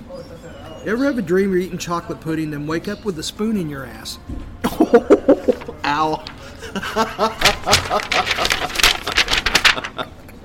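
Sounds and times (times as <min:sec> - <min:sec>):
speech: 0:00.1 - 0:09.0
laughter: 0:04.6 - 0:10.4
voice murmur: 0:04.8 - 0:05.8
paper being crumpled up: 0:05.3 - 0:06.5, 0:07.1 - 0:10.2.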